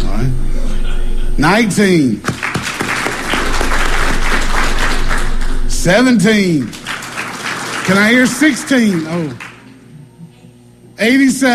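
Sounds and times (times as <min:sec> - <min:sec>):
speech: 0:01.4 - 0:02.3, 0:05.8 - 0:06.8, 0:07.9 - 0:09.4, 0:11.0 - 0:11.5
audience applause for someone's birthday: 0:02.2 - 0:09.9.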